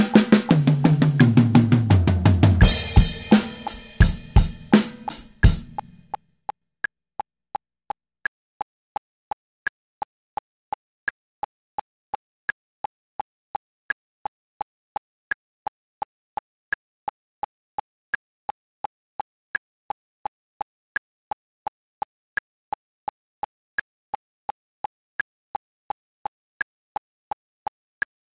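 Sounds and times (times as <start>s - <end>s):
drum fills: 0.0s - 6.0s.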